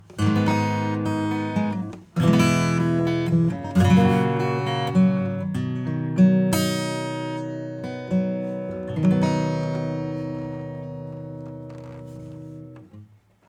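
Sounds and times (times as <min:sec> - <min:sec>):
acoustic music: 0:00.0 - 0:13.2.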